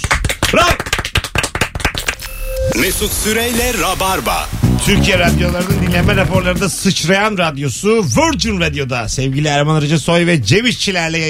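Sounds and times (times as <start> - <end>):
applause: 0.0 - 2.3
speech: 0.5 - 1.0, 2.8 - 11.2.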